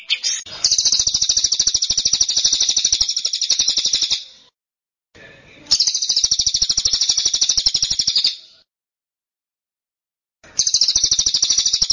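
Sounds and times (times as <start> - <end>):
shrill bird chirps: 0.0 - 4.6, 5.7 - 8.7, 10.4 - 11.9.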